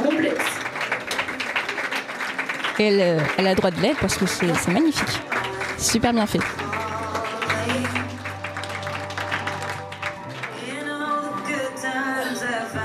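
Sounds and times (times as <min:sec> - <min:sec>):
audience applause at fashion show: 0:00.0 - 0:11.7
speech: 0:02.8 - 0:06.7
sustained music: 0:03.6 - 0:12.8.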